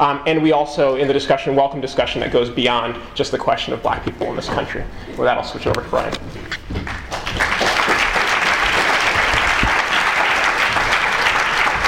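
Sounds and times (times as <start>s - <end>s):
speech: 0.0s - 6.2s
crowd applause: 6.8s - 11.8s.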